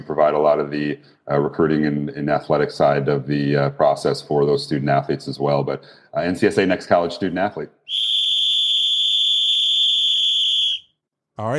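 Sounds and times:
speech: 0.2s - 7.8s, 11.4s - 11.5s
whistle blowing: 7.9s - 11.0s.

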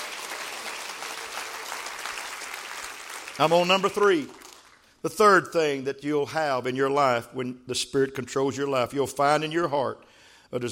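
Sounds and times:
audience clapping hands: 0.0s - 5.0s
speech: 3.4s - 4.4s, 5.0s - 10.7s.

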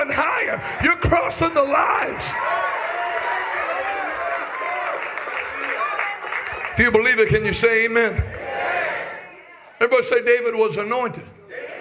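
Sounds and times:
audience shouting: 0.0s - 6.6s, 8.3s - 9.7s
speech: 1.3s - 2.6s, 6.8s - 8.4s, 9.8s - 11.6s
audience clapping: 2.4s - 7.7s.

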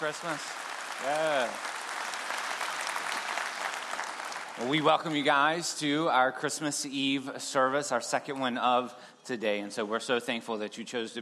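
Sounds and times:
speech: 0.0s - 1.7s, 4.6s - 11.2s
audience applause: 0.0s - 5.6s.

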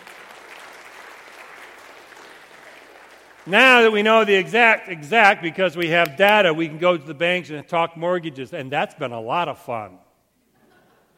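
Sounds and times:
audience applause: 0.0s - 4.1s
speech: 3.4s - 10.0s
laughter: 10.5s - 11.1s.

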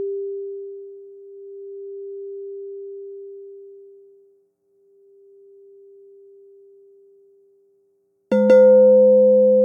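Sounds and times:
crystal singing bowl ringing: 8.3s - 9.6s.

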